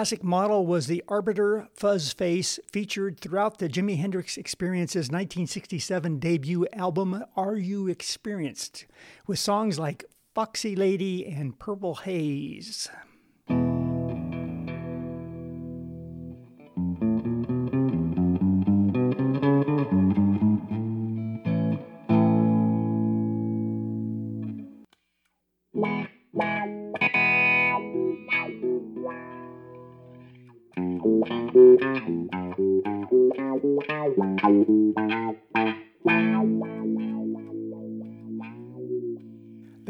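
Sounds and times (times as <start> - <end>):
speech: 0.0 - 13.1
clean guitar: 13.5 - 24.9, 25.8 - 39.8.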